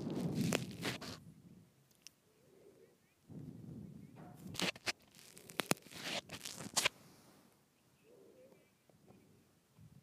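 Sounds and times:
twisting a microphone crunching and scraping: 0:00.0 - 0:01.4, 0:03.3 - 0:07.0.

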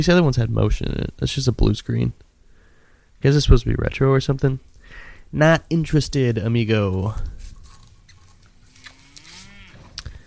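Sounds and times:
speech: 0:00.0 - 0:02.2, 0:03.2 - 0:07.3
cow mooing in a film: 0:08.5 - 0:10.2.

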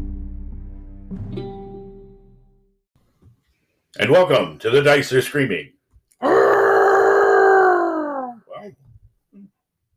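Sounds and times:
speech: 0:04.0 - 0:06.4
person howling like a wolf: 0:06.2 - 0:08.5.

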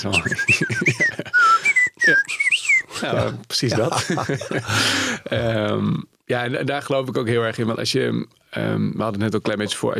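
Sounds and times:
speech: 0:00.0 - 0:01.0, 0:03.0 - 0:09.9
person whistling a playful imitation of birdsong: 0:00.0 - 0:02.9
laughter: 0:00.2 - 0:01.4, 0:03.0 - 0:04.9.

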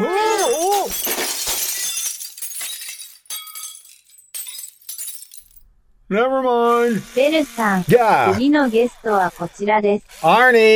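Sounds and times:
crystal glass figurines shattering: 0:00.0 - 0:05.6
speech: 0:06.1 - 0:10.7.

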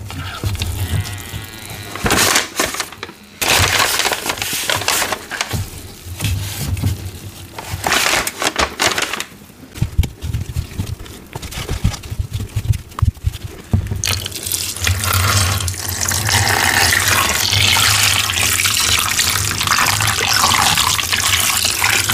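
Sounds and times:
gym chalk crumbly crunching and creaks: 0:00.0 - 0:22.1
dye pouring over soft gym chalk: 0:14.0 - 0:22.1.

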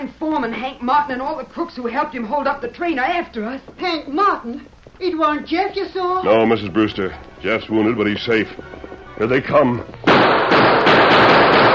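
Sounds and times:
speech: 0:00.0 - 0:10.4
volley of gunshots: 0:10.0 - 0:11.7.

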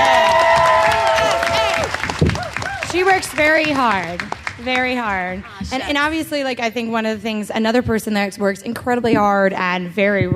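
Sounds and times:
person cheering: 0:00.0 - 0:03.0
live audience applause: 0:00.0 - 0:06.2
speech: 0:03.2 - 0:10.3.

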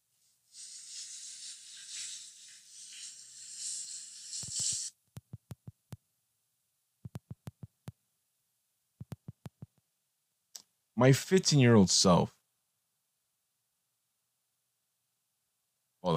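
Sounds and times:
shower water running: 0:00.5 - 0:04.9
speech: 0:11.0 - 0:12.4.

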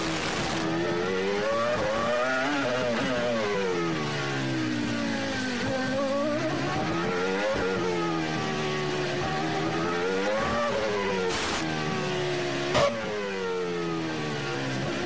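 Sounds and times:
Formula One race car engine howling: 0:00.0 - 0:15.0.

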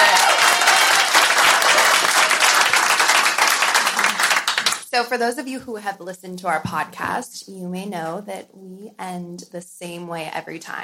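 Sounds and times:
crowd applauding: 0:00.0 - 0:04.8
speech: 0:05.0 - 0:10.8.

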